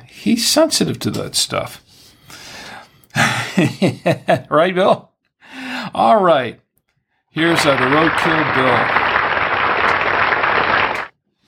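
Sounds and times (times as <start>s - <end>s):
speech: 0.2s - 1.9s, 3.1s - 5.1s, 5.9s - 6.6s, 7.4s - 9.0s
audience applause: 7.4s - 11.1s.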